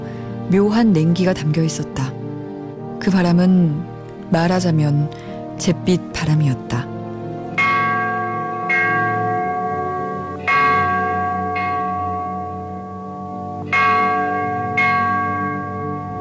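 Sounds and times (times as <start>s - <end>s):
speech: 0.5s - 2.2s, 3.0s - 6.9s
clock tower bell striking midnight: 7.5s - 16.1s.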